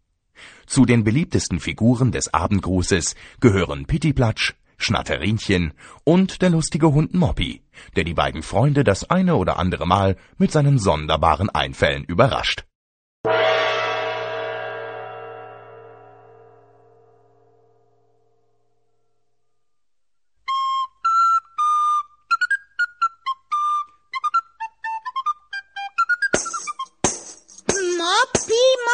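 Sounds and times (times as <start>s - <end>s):
speech: 0.7s - 13.4s
bell-like tone: 13.3s - 18.3s
sweet flute-like whistling melody: 20.2s - 27.0s
loud sharp thumping beats: 26.3s - 28.7s.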